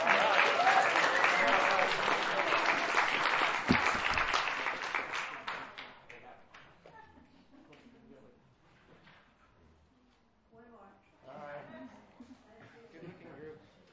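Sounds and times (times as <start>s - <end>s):
audience applause: 0.0s - 5.9s.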